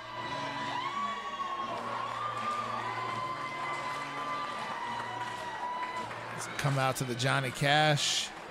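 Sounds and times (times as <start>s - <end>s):
fans stomping and clapping in unison: 0.0s - 8.4s
speech: 6.4s - 8.4s.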